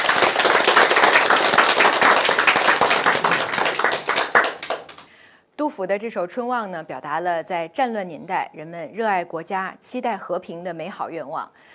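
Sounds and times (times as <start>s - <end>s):
group applauding: 0.0s - 5.1s
speech: 5.8s - 11.7s.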